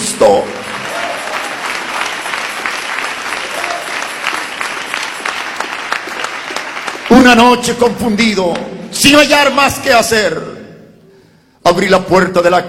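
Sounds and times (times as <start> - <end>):
speech: 0.2 - 0.6, 7.2 - 10.6, 11.7 - 12.6
audience applauding: 0.2 - 7.6.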